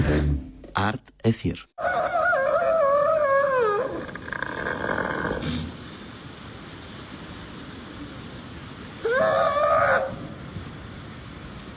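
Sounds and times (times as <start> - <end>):
speech: 0.1 - 1.9
Antarctic seal calling: 1.8 - 5.8, 9.0 - 10.3.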